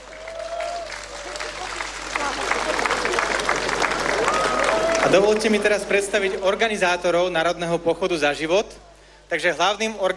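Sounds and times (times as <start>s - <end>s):
scattered cheers and voices: 0.0s - 3.3s, 4.1s - 5.5s
large crowd applauding: 0.0s - 6.8s
speech: 5.1s - 10.1s.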